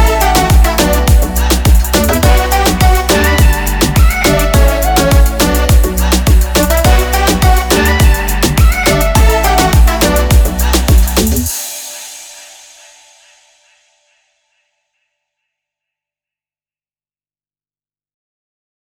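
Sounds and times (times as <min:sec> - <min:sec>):
instrumental music: 0:00.0 - 0:11.5.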